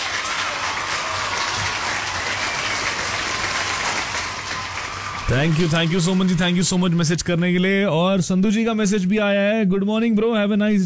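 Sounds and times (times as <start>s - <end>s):
applause: 0.0s - 7.2s
speech: 5.3s - 10.8s.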